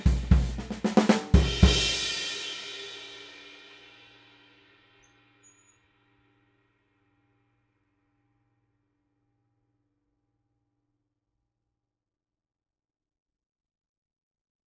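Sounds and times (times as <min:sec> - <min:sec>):
Sabian 22-inch cymbal: 0:00.0 - 0:05.6.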